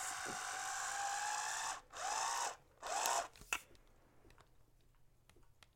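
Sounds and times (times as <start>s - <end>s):
electric wine bottle opener uncorking a bottle: 0.0s - 3.4s.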